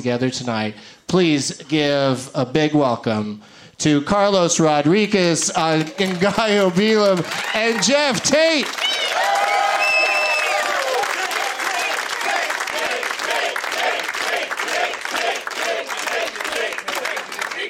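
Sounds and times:
speech: 0.0s - 9.0s
crowd clapping: 4.9s - 17.6s
whoops and cheers: 8.7s - 12.5s
crowd chanting: 11.1s - 17.6s.

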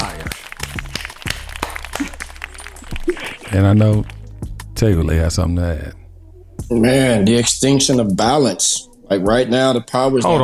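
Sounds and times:
scattered hand claps from a small group: 0.0s - 4.7s
speech: 3.5s - 4.2s, 4.8s - 6.0s, 6.7s - 10.4s.

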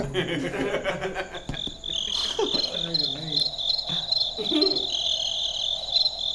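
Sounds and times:
person chuckling: 0.0s - 2.8s, 3.9s - 4.9s
crickets chirping: 0.0s - 6.3s.

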